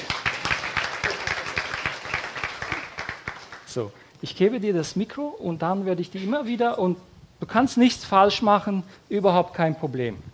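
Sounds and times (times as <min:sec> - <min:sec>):
audience applause: 0:00.0 - 0:03.8
speech: 0:03.7 - 0:10.3.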